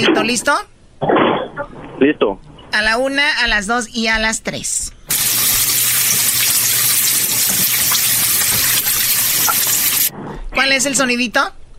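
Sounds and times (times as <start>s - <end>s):
speech: 0.0s - 1.3s, 2.0s - 5.0s, 10.6s - 11.6s
fish frying in hot oil in pan: 5.1s - 10.1s.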